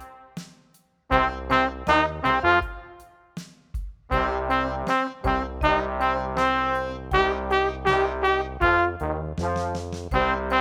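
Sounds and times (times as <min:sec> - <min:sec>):
power rock backing track: 0:01.1 - 0:10.5.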